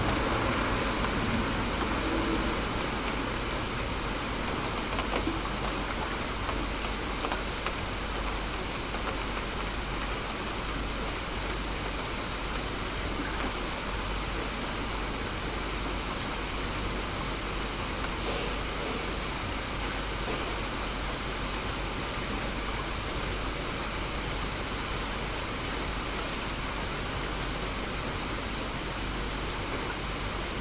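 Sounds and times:
rain in an inner yard: 0.0s - 30.5s.

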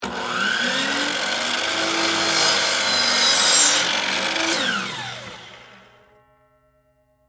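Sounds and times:
miter saw cutting a 2x4 wood board: 0.0s - 5.8s.

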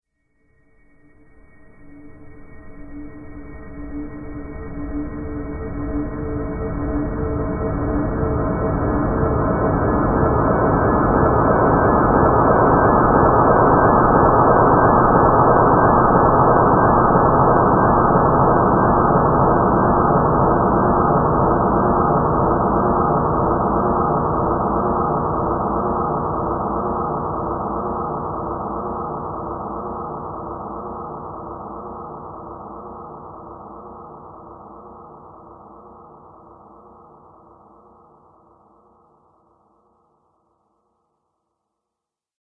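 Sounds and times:
ghostly paranormal drone: 0.7s - 39.4s.

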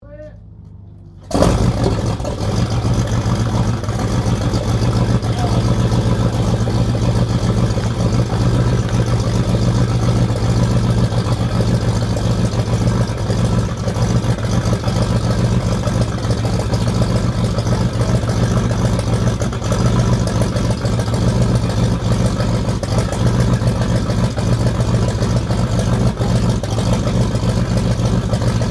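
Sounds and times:
1916 Sopwith Pup replica aircraft engine starting up and idling: 0.1s - 28.6s.

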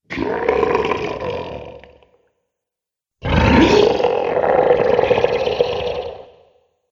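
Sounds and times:
dragon monster sounds: 0.0s - 2.0s, 3.2s - 6.5s.

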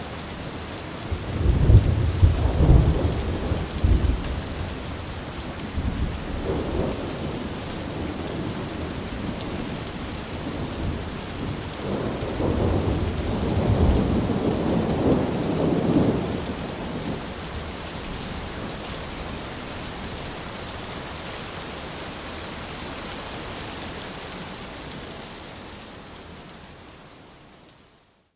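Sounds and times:
rain: 0.0s - 28.3s
thunder: 1.3s - 4.6s, 11.4s - 17.2s.

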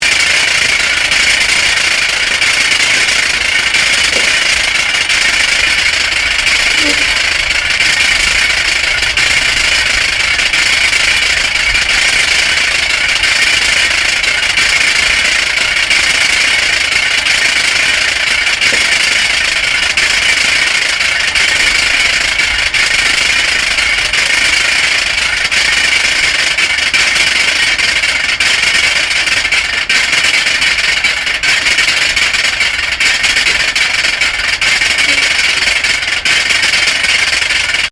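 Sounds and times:
Boeing C-17 Globemaster turbine spinning freely: 0.0s - 37.9s.

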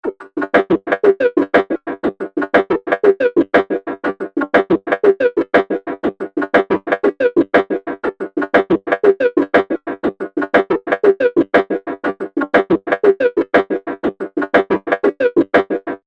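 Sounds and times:
robotic groove loop: 0.0s - 16.0s.

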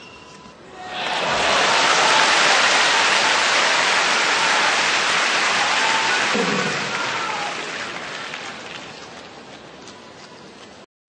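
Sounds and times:
tennis crowd cheering a point: 0.7s - 9.5s.

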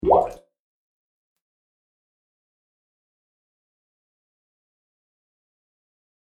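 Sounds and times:
water bubbles: 0.0s - 0.4s.

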